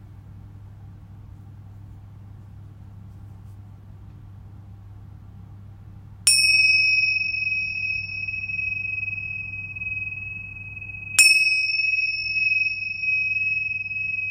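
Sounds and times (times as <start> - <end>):
Tibetan singing bowls and crystal bowls: 6.3 - 14.3.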